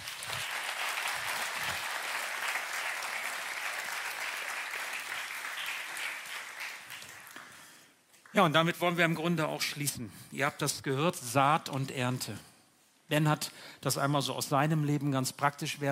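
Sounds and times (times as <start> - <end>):
audience clapping: 0.0 - 8.5
speech: 8.4 - 12.5, 13.1 - 15.9.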